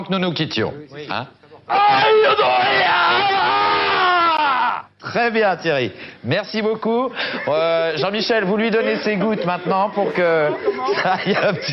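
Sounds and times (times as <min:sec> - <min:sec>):
speech: 0:00.0 - 0:03.6, 0:05.1 - 0:11.7
person imitating a hammer thrower's cry: 0:01.7 - 0:04.8
laughter: 0:07.2 - 0:11.7.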